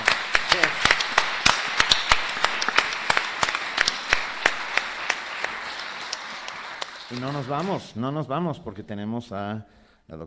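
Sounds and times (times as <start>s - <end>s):
audience applause: 0.0s - 7.9s
speech: 7.1s - 10.2s.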